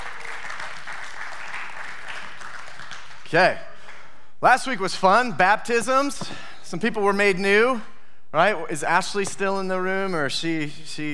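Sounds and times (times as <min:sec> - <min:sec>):
people cheering: 0:00.0 - 0:03.1
speech: 0:03.3 - 0:03.7, 0:04.4 - 0:11.1.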